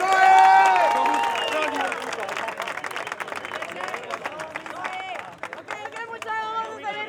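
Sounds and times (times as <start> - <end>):
cheering voices and whoops at a rap battle event in Guatemala City: 0.0 - 2.3
audience applause at a rap battle event in Guatemala City: 0.0 - 6.8.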